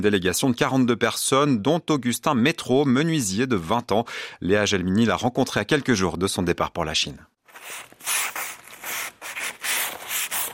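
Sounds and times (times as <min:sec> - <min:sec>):
speech: 0:00.0 - 0:08.4
sandpaper sanding a wooden stepladder: 0:07.5 - 0:10.5.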